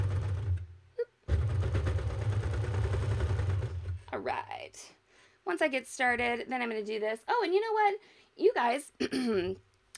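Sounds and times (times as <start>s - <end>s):
serger sewing machine stitching fabric: 0.0s - 4.1s
speech: 4.2s - 9.7s.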